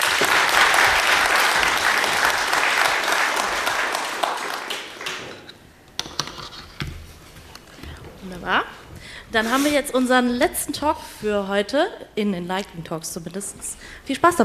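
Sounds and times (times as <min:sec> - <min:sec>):
audience applause: 0:00.0 - 0:05.5
speech: 0:09.3 - 0:14.4.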